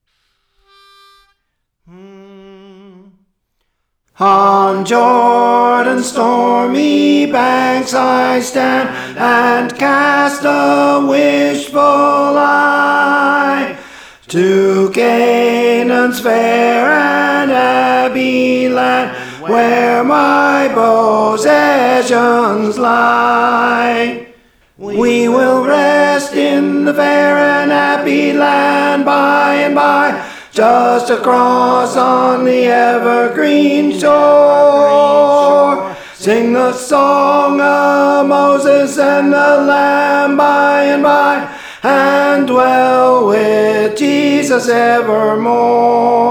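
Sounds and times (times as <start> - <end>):
tenor voice singing a training part: 4.2 - 46.2.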